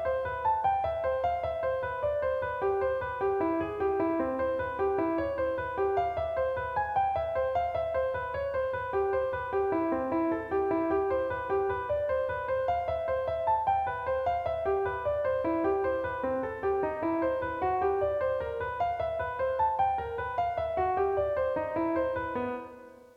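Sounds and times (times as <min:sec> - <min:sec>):
major seventh chord embellishment on jazz piano: 0:00.0 - 0:23.1.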